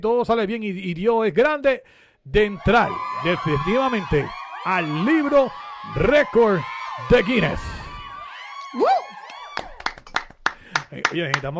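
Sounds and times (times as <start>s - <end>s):
speech: 0.0s - 7.8s, 8.7s - 9.2s, 10.9s - 11.5s
audience applause: 2.6s - 11.5s.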